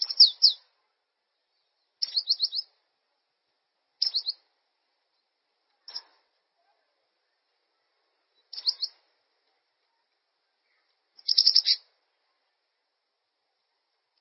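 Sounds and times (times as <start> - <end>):
bird song of fast high chirps and trills: 0.0 - 0.7, 1.3 - 2.8, 4.0 - 4.5, 8.3 - 9.1, 10.7 - 11.9.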